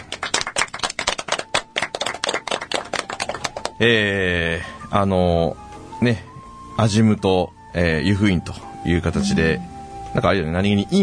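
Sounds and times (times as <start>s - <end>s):
hand clapping: 0.0s - 3.8s
speech: 3.8s - 11.0s
sustained harmonic-rich voice: 9.2s - 9.8s.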